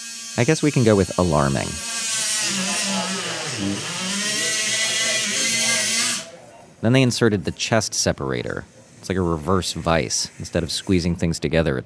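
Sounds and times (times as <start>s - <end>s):
surgical saw cutting open the breastbone: 0.0s - 6.5s, 8.4s - 11.1s
speech: 0.4s - 1.9s, 3.6s - 3.9s, 6.8s - 11.8s.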